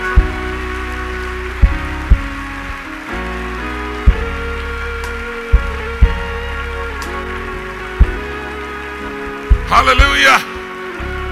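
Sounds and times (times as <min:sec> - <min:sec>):
audience clapping along: 0:00.0 - 0:11.2
sustained organ-like chords: 0:00.0 - 0:11.3
sharp drum or beat hits: 0:01.6 - 0:02.4, 0:04.1 - 0:04.5, 0:05.5 - 0:06.4, 0:09.5 - 0:10.1
speech: 0:09.8 - 0:10.5.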